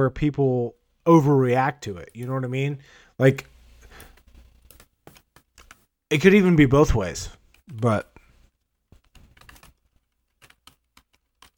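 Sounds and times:
speech: 0.0 - 4.1, 6.1 - 8.1
typing on a computer keyboard: 4.0 - 5.9, 9.0 - 11.5.

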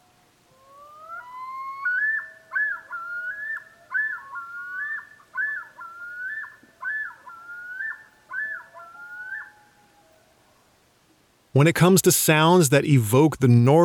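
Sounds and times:
common loons calling in a yodel chorus: 0.0 - 10.5
speech: 11.6 - 13.8.

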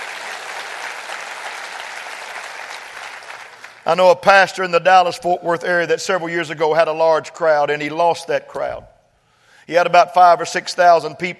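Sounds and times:
audience clapping hands: 0.0 - 4.0
speech: 3.9 - 8.9, 9.7 - 11.3.

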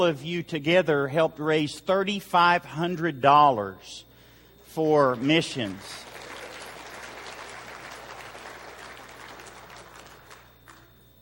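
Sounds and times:
speech: 0.0 - 4.1, 4.7 - 6.1
audience applause: 5.0 - 11.1.

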